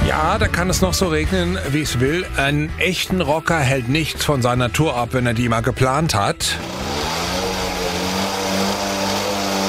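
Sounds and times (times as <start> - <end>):
speech: 0.1 - 6.8
moped engines revving: 6.5 - 9.6.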